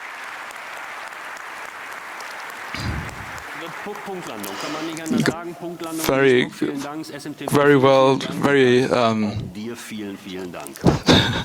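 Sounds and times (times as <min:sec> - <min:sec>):
audience applause: 0:00.0 - 0:06.0, 0:10.3 - 0:11.4
laughter: 0:02.7 - 0:11.4
speech: 0:03.6 - 0:11.4.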